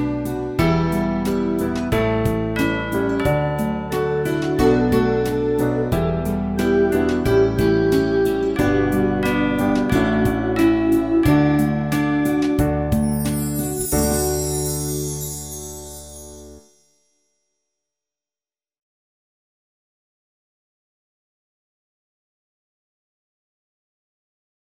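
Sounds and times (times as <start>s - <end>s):
instrumental music: 0.0s - 16.9s.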